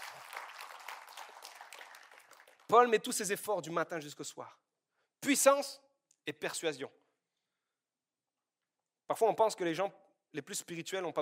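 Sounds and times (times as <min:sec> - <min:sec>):
church congregation applauding during a sermon: 0:00.0 - 0:03.0
speech: 0:02.7 - 0:07.0, 0:09.1 - 0:11.1.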